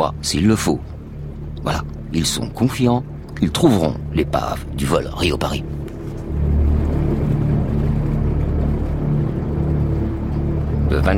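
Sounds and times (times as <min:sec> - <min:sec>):
speech: 0:00.0 - 0:00.9, 0:01.6 - 0:05.8, 0:11.0 - 0:11.1
engine drone of the Lucia, a large research ship at sea: 0:00.0 - 0:11.1.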